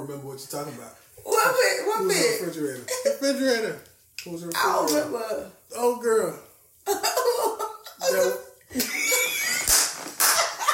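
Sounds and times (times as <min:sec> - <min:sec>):
speech: 0:00.0 - 0:07.4, 0:08.1 - 0:09.0
loud hand clapping: 0:09.5 - 0:10.7.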